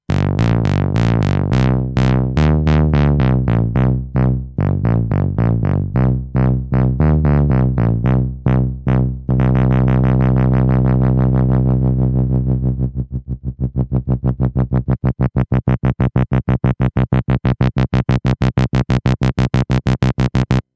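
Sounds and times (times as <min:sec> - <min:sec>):
electric bass: 0:00.0 - 0:20.7.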